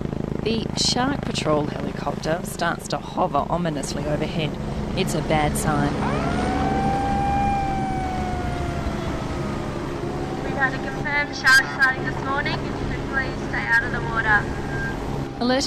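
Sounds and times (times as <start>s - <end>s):
speech: 0.4s - 6.4s, 10.7s - 14.6s, 15.4s - 15.6s
beach shark alarm siren: 5.6s - 15.4s.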